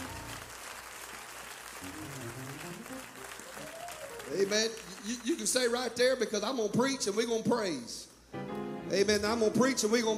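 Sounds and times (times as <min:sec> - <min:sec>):
audience clapping hands: 0:00.0 - 0:06.2
speech: 0:04.3 - 0:08.1, 0:08.9 - 0:10.1.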